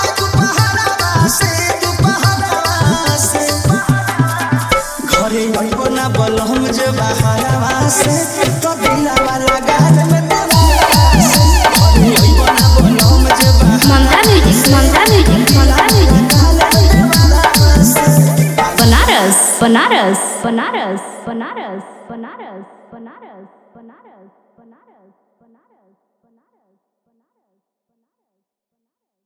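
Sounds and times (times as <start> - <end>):
Bhojpuri DJ remix song: 0.0 - 22.1.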